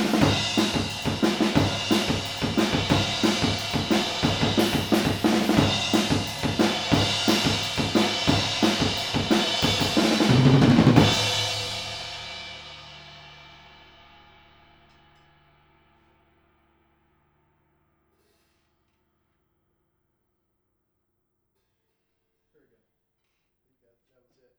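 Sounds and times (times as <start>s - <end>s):
fathead drums recorded with mid-side stereo: 0.0s - 15.2s.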